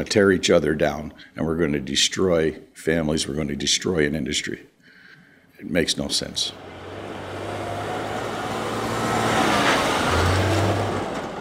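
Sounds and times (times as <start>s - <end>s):
speech: 0.0s - 4.7s, 5.6s - 6.8s
massive trucks rumbling past: 6.4s - 11.3s
heavy road traffic: 6.5s - 11.3s.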